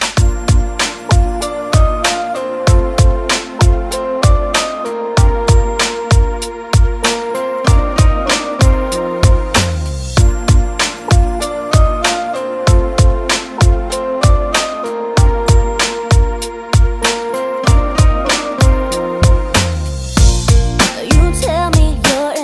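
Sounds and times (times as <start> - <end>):
90s pop music: 0.2 - 22.4.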